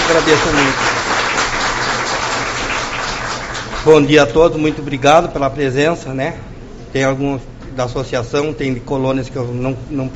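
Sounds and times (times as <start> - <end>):
audience clapping: 0.0 - 4.3
speech: 0.1 - 0.9, 3.8 - 10.1.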